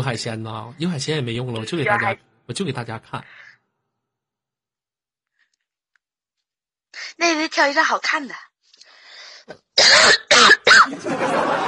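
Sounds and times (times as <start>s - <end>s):
speech: 0.0s - 3.5s, 7.0s - 8.5s, 9.5s - 11.6s
cough into the microphone: 9.8s - 11.0s
laughter: 10.9s - 11.6s.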